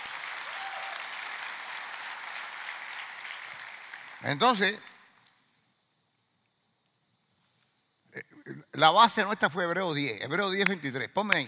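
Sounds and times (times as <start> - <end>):
audience applause: 0.0 - 4.8
speech: 4.2 - 4.9, 8.8 - 11.4.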